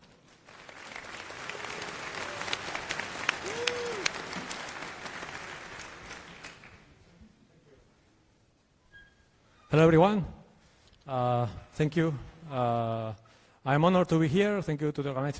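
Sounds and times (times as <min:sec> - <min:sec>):
audience applause welcoming the keynote speaker at a Linux conference: 0:00.0 - 0:07.0
speech: 0:09.8 - 0:10.4, 0:11.1 - 0:15.3.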